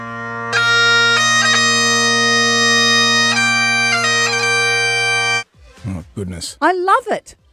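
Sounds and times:
bagpipes playing: 0:00.0 - 0:06.0
speech: 0:06.4 - 0:07.4.

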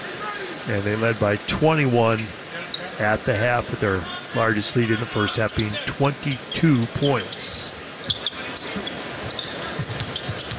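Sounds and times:
speech: 0:00.7 - 0:02.4, 0:03.0 - 0:07.7
basketball dribbled on a court: 0:09.2 - 0:10.5.

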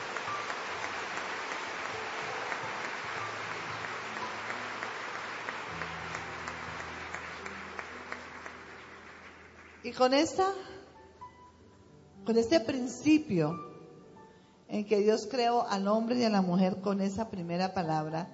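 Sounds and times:
audience applauding: 0:00.0 - 0:09.9
speech: 0:09.9 - 0:10.7, 0:12.3 - 0:13.7, 0:14.7 - 0:18.3.

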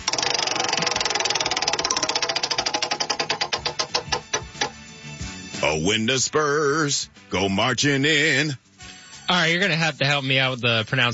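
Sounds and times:
prize wheel pointer clicking against the pegs: 0:00.0 - 0:04.9
speech: 0:05.7 - 0:08.6, 0:09.3 - 0:11.1.

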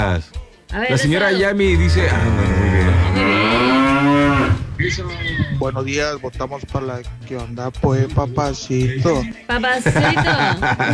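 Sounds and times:
speech: 0:00.2 - 0:10.9
cow mooing: 0:01.6 - 0:05.8
laughter: 0:09.7 - 0:10.9.

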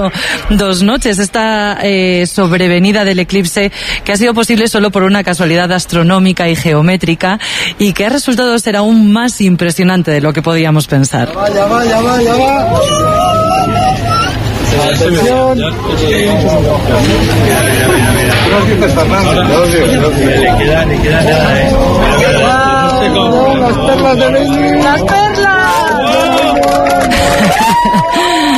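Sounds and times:
speech: 0:00.0 - 0:25.5
laughter: 0:12.3 - 0:15.4, 0:16.3 - 0:28.5
crowd applauding at eclipse totality at the Observatorio de Yeves: 0:22.0 - 0:28.5.

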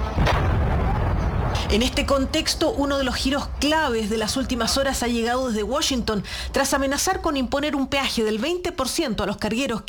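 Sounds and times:
explosion recorded in Kuwait: 0:00.1 - 0:01.9
speech: 0:01.7 - 0:09.8.

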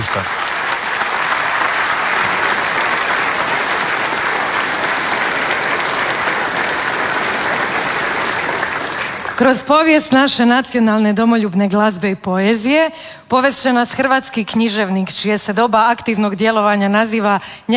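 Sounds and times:
theatre audience applause at the Croatian National Theatre: 0:00.0 - 0:09.8
speech: 0:00.2 - 0:00.4, 0:09.4 - 0:17.7.

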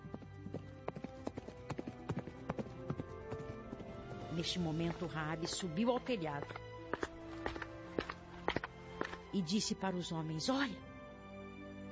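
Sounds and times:
horse hooves clip-clopping: 0:00.0 - 0:09.3
speech: 0:04.4 - 0:06.7, 0:09.3 - 0:10.9.

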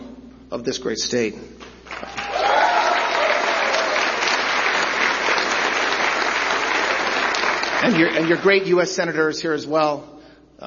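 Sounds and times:
speech: 0:00.5 - 0:02.6, 0:07.8 - 0:10.6
audience applause: 0:01.9 - 0:08.8.

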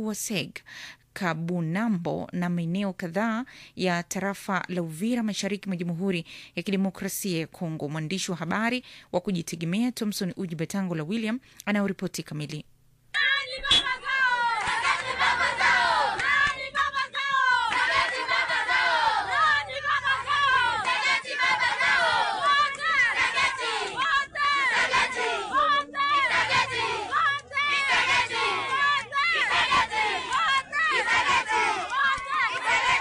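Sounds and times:
speech: 0:00.0 - 0:12.7
residents of Sange chanting for the Congolese army's arrival: 0:13.4 - 0:32.9
people clapping: 0:13.7 - 0:32.9.

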